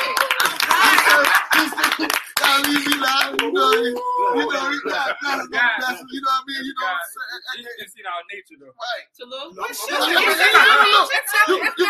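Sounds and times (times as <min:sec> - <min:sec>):
crowd clapping: 0:00.0 - 0:04.1
chuckles and voices: 0:00.0 - 0:06.2, 0:10.0 - 0:11.8
speech: 0:05.1 - 0:11.8.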